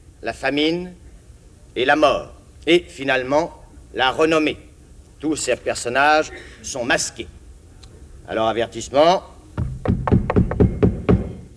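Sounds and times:
speech: 0:00.2 - 0:01.0, 0:01.8 - 0:07.4, 0:08.3 - 0:09.3
wooden knocks on a stage floor signalling a theatre performance: 0:09.6 - 0:11.5.

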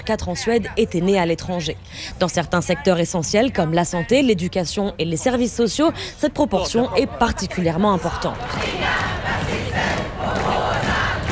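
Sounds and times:
speech: 0:00.0 - 0:09.3
large crowd shouting and chanting at a rally: 0:06.9 - 0:11.3.

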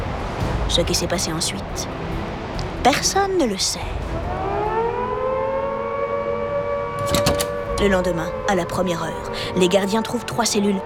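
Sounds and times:
speech: 0:00.7 - 0:02.2, 0:02.8 - 0:04.4, 0:07.8 - 0:10.8
prison alarm siren wailing: 0:04.0 - 0:10.8.

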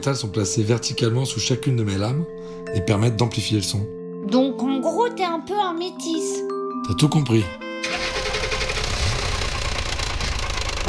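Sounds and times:
speech: 0:00.0 - 0:08.0
old car engine running noisily: 0:07.8 - 0:10.8.

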